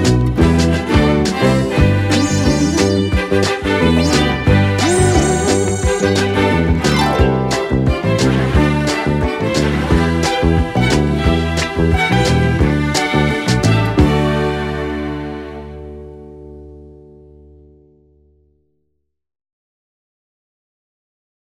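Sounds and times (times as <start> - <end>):
driving instrumental music: 0.1 - 14.4.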